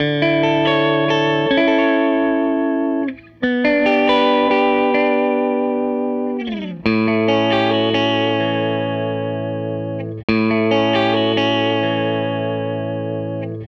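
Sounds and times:
guitar loop: 0:00.0 - 0:13.6.

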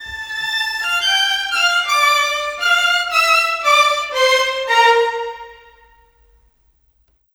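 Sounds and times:
orchestral rock pop violin music: 0:00.0 - 0:05.7.

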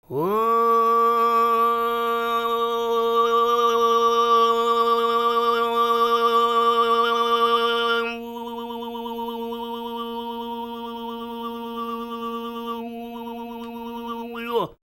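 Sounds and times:
Tuvan throat singing: 0:00.0 - 0:14.8.

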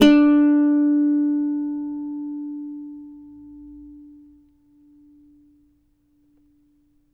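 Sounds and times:
cavaquinho D chord: 0:00.0 - 0:05.6.

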